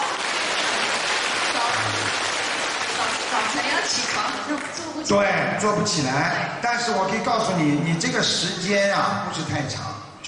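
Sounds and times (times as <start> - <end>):
applause: 0.0 - 4.8
speech: 3.9 - 10.2.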